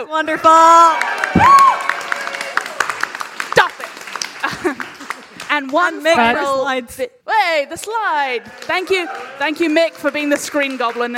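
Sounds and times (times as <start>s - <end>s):
speech: 0.0s - 1.7s, 5.6s - 11.1s
crowd cheering with shouts and whoops: 0.4s - 5.4s, 8.2s - 11.1s
scattered clapping: 1.0s - 6.3s, 7.7s - 11.1s
laughter: 4.3s - 5.4s.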